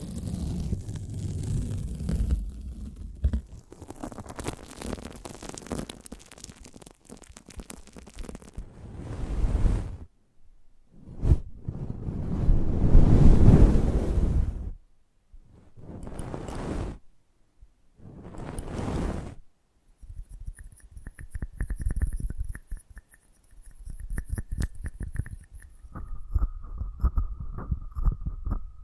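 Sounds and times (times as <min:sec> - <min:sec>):
crackly scratching: 0:00.0 - 0:10.1, 0:15.5 - 0:17.0, 0:18.0 - 0:19.4, 0:20.0 - 0:28.8
rubbing and whooshing against the microphone: 0:00.0 - 0:10.1, 0:11.0 - 0:14.8, 0:15.4 - 0:17.0, 0:18.0 - 0:19.4, 0:20.0 - 0:28.8.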